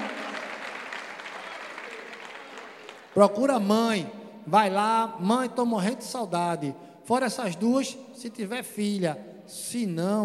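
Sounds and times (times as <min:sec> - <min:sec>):
audience applause: 0:00.0 - 0:03.2
speech: 0:03.2 - 0:10.2.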